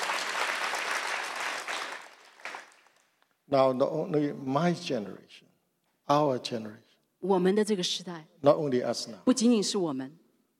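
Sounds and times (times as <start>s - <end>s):
audience applause: 0.0s - 3.2s
speech: 3.5s - 5.5s, 6.1s - 10.2s.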